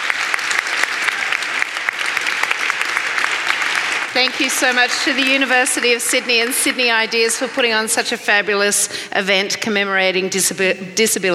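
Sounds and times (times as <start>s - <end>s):
audience applause: 0.0s - 8.0s
speech: 4.2s - 11.3s.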